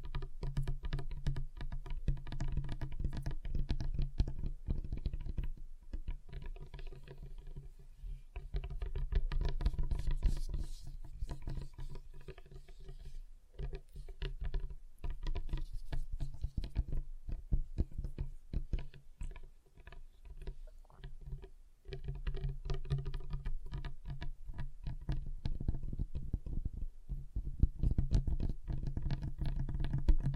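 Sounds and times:
fingers tapping on a table: 0.0s - 30.3s.

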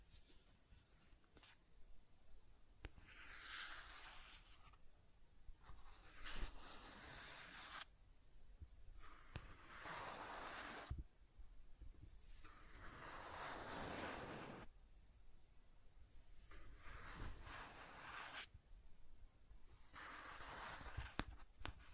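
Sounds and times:
rough hissy scratching and tracing strokes: 2.9s - 4.8s, 5.7s - 7.9s, 9.0s - 11.0s, 12.3s - 14.7s, 16.2s - 18.5s, 19.7s - 21.8s.

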